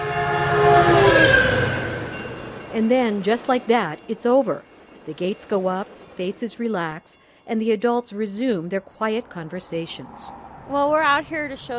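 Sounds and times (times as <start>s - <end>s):
massive silver commuter train horn blaring at a level crossing: 0.0s - 4.0s
massive silver commuter train rumbling through a level crossing: 0.0s - 11.7s
speech: 2.8s - 11.7s.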